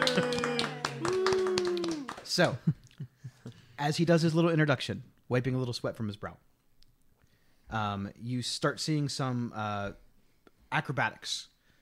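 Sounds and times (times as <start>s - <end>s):
audience applause: 0.0s - 2.6s
speech: 2.4s - 2.8s, 3.8s - 6.5s, 7.7s - 10.0s, 10.7s - 11.5s.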